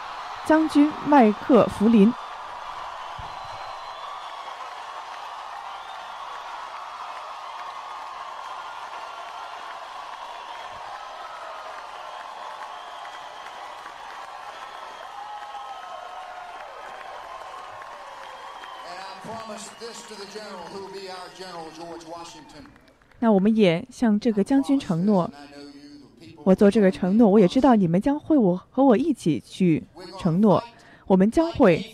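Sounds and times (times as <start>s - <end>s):
audience applause: 0.0s - 23.2s
speech: 0.5s - 2.2s, 23.2s - 25.6s, 26.4s - 31.9s.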